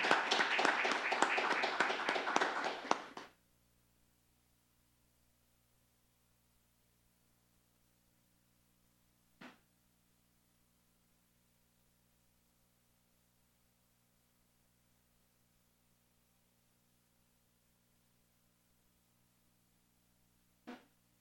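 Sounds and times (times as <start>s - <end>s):
audience applause: 0.0s - 3.3s
faint low hum: 0.0s - 21.1s.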